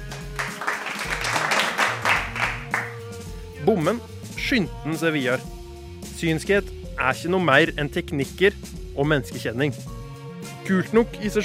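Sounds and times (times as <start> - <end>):
audience applause: 0.0 - 3.0
speech: 3.6 - 5.6, 6.2 - 9.9, 10.7 - 11.4.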